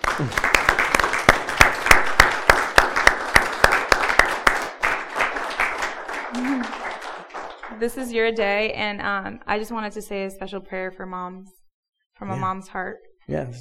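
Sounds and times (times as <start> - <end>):
audience applause: 0.0 - 8.1
speech: 0.2 - 0.5, 7.8 - 11.6, 12.2 - 13.5.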